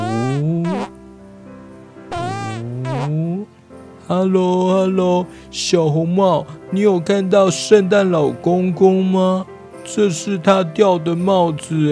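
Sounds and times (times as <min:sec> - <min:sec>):
cartoonish fart sounds: 0:00.0 - 0:01.0, 0:02.1 - 0:03.4
quieter low drone: 0:00.0 - 0:03.6
speech: 0:04.1 - 0:11.9.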